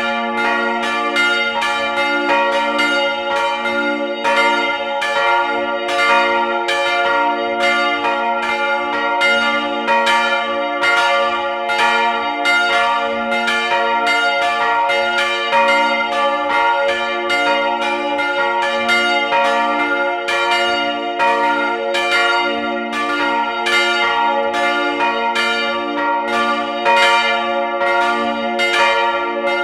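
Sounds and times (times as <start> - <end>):
bells ringing in Lauenstein: 0.0 - 29.6.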